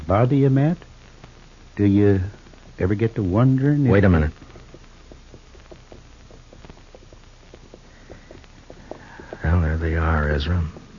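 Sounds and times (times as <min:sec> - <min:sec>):
speech: 0:00.1 - 0:00.9, 0:01.8 - 0:04.5, 0:10.0 - 0:10.8
horses walking with hooves clip-clopping: 0:02.3 - 0:10.9.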